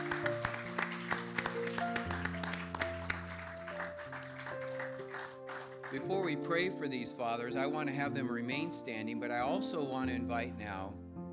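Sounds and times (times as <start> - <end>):
audience clapping: 0.0 - 6.4
sustained keyboard chords: 0.0 - 11.3
speech: 5.9 - 11.0.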